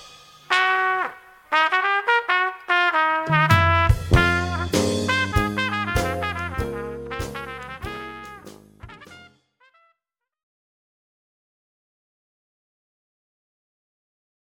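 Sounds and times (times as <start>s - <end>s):
dixieland blues: 0.5s - 9.3s.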